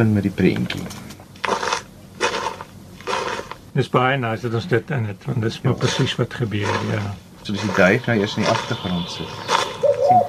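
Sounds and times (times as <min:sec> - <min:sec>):
speech: 0:00.0 - 0:01.0, 0:03.8 - 0:09.5
crunchy footsteps sound effect: 0:00.8 - 0:03.7, 0:05.7 - 0:10.2.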